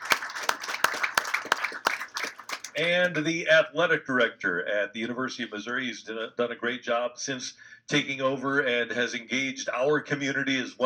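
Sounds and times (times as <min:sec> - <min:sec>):
audience applause: 0:00.0 - 0:03.1
speech: 0:02.8 - 0:10.8.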